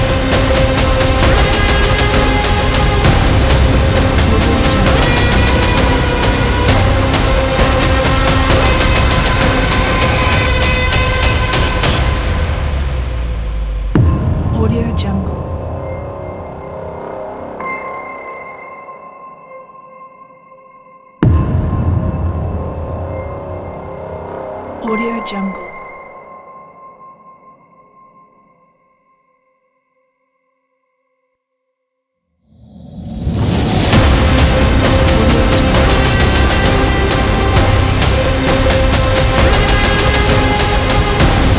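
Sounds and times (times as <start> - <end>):
aggressive hybrid music: 0.0 - 18.0, 21.2 - 24.9, 32.6 - 41.5.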